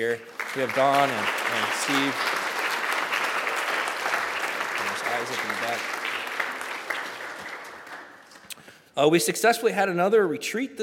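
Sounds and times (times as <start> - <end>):
speech: 0.0 - 2.4, 5.2 - 6.0, 9.0 - 10.8
audience applause: 0.0 - 8.5.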